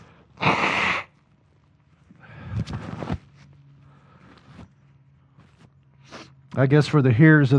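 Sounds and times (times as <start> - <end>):
person blowing nose: 0.4 - 1.1, 6.0 - 6.4
speech: 6.6 - 7.5.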